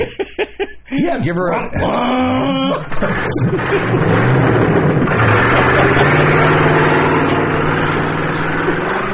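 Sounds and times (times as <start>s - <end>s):
laughter: 0.0s - 1.2s, 1.8s - 9.1s
speech: 0.0s - 6.8s
engine revving sound effect: 2.9s - 9.1s.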